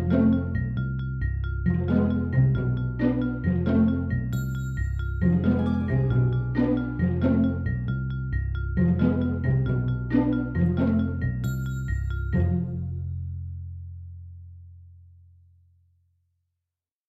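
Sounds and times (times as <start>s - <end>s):
percussion: 0.0s - 13.1s.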